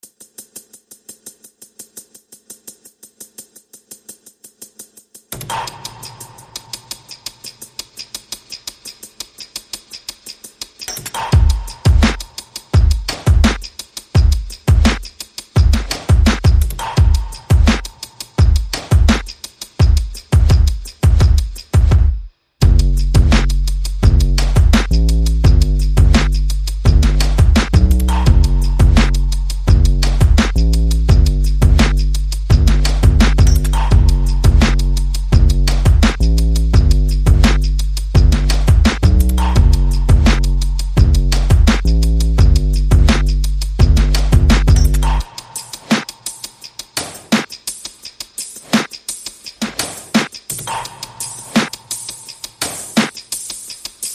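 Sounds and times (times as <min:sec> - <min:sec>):
percussion: 0:00.0 - 0:54.1
bass: 0:22.6 - 0:45.2.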